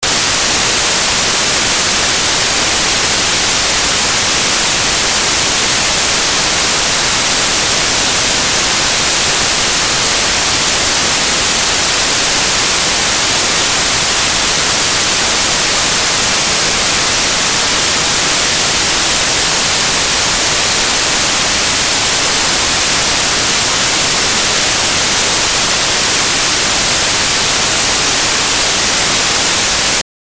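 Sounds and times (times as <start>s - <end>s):
pink noise: 0.0s - 30.0s.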